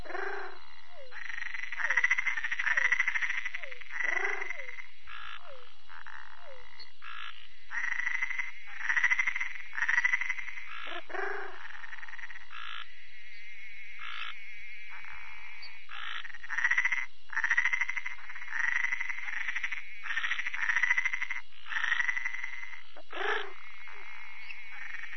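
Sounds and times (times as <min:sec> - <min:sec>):
Treefrog pulsed buzzy trills: 0:00.0 - 0:25.1.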